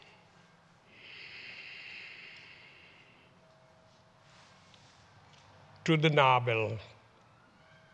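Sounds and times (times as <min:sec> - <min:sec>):
slow quiet inhale through the nostrils during a breathing exercise: 0:00.9 - 0:03.4
speech: 0:05.8 - 0:06.9.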